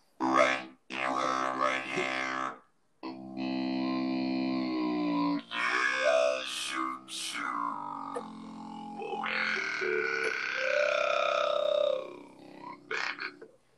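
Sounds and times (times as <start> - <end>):
voice pitched down through an effects unit: 0.2 - 13.5.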